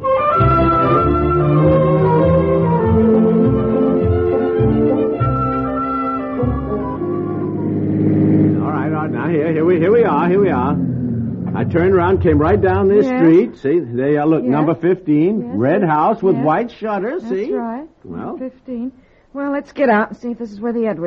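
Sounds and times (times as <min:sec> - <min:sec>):
car engine droning while driven: 0:00.7 - 0:14.2
speech: 0:11.6 - 0:21.0.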